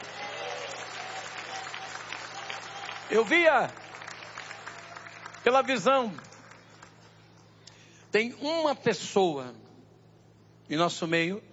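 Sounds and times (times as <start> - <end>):
congregation clapping hands in a church service: 0.0 - 7.6
speech: 3.1 - 3.8, 5.4 - 6.3, 8.1 - 9.6, 10.7 - 11.5.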